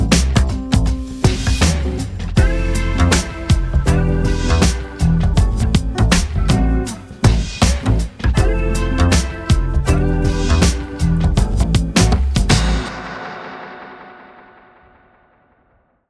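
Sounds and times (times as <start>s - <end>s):
upright bass: 0.0s - 12.9s.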